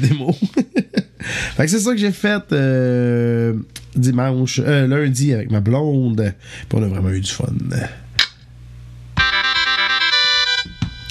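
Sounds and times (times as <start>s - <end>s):
laughter: 0.0s - 1.2s
speech: 0.0s - 8.0s
short bright synthesized brass-like fanfare: 9.2s - 11.0s.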